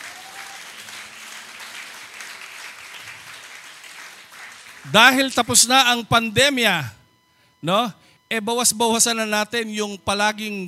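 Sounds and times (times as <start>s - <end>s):
congregation applauding during a church prayer meeting: 0.0s - 5.7s
speech: 4.8s - 7.0s, 7.6s - 10.6s.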